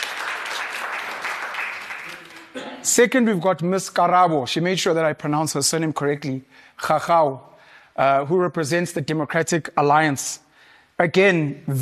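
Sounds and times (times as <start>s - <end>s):
audience applause for a speaker at a panel event: 0.0s - 2.6s
speech: 2.8s - 10.4s, 11.0s - 11.7s.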